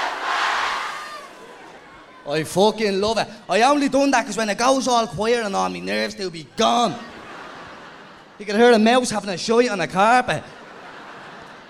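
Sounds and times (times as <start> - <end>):
crowd shouting a chant: 0.0 - 1.8
speech: 2.3 - 7.1, 8.4 - 10.6
laughter: 6.6 - 9.1, 10.3 - 11.6.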